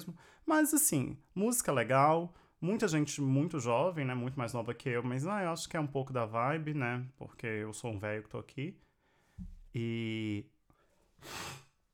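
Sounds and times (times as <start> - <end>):
speech: 0.0 - 10.5, 11.2 - 11.6
person sniffling: 11.2 - 11.8.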